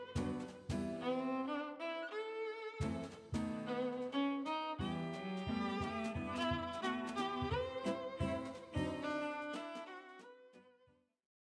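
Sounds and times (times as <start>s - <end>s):
jazz drum: 0.0s - 1.4s, 2.8s - 10.3s
piano: 0.0s - 10.2s
cello: 0.0s - 10.8s
violin: 0.0s - 11.0s.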